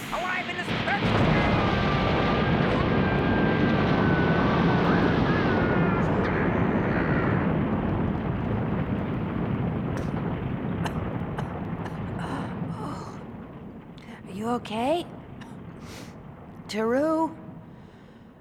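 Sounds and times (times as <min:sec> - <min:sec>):
ceiling and wall collapsing with rumbling crumbling debris: 0:00.0 - 0:18.3
faint high scraping whines: 0:01.0 - 0:09.4
speech: 0:14.5 - 0:15.2, 0:16.7 - 0:17.4.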